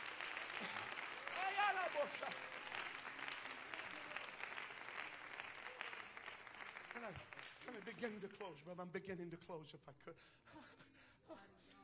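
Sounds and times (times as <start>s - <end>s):
crowd clapping hands: 0.0s - 8.7s
speech: 1.8s - 2.8s, 7.0s - 11.4s.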